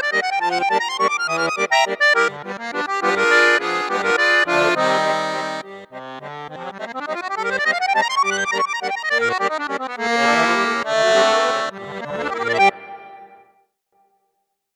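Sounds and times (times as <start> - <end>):
bayan accordion on 8 8 register: 0.0 - 13.5.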